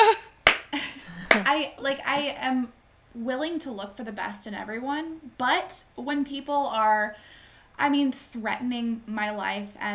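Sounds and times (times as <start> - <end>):
slow sarcastic hand clapping: 0.4 - 1.5
speech: 1.5 - 9.9.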